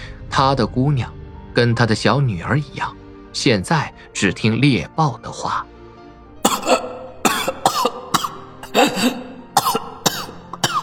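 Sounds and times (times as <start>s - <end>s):
speech: 0.4s - 5.7s, 8.8s - 9.2s
laughing cough: 6.4s - 10.8s.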